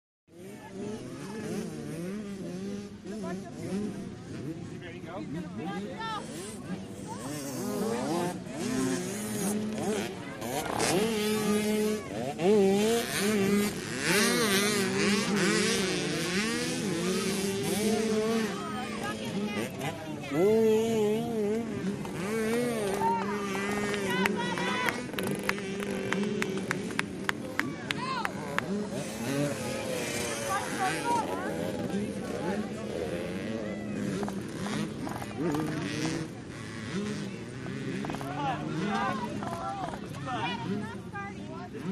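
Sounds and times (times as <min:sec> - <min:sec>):
crowd at 50 cc motocross pit: 0:00.3 - 0:41.9
50 cc motocross bikes idling in the pits: 0:00.4 - 0:41.9.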